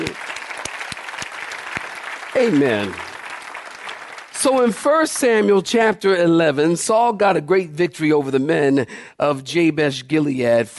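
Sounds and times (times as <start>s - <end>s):
audience clapping: 0.0s - 5.9s
speech: 2.4s - 3.1s, 4.4s - 10.7s.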